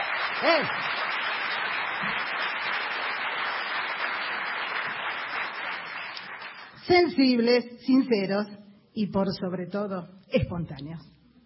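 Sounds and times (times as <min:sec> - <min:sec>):
audience applause: 0:00.0 - 0:06.8
speech: 0:00.4 - 0:01.0, 0:02.0 - 0:02.3, 0:06.9 - 0:11.1.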